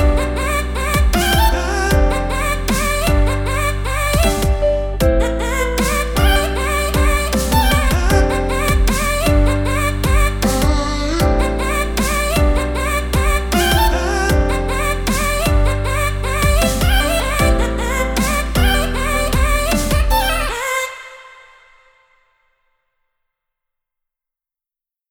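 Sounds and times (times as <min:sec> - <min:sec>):
future bass music sketch: 0:00.0 - 0:20.6.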